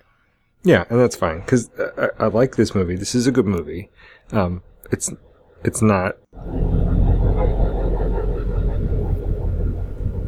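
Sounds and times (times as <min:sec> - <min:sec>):
speech: 0:00.6 - 0:06.7
diesel pickup truck engine idling: 0:06.4 - 0:10.2.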